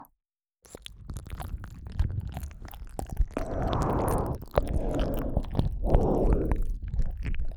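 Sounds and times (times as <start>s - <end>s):
deep ear licking ASMR loop in the right ear: 0.7s - 7.5s.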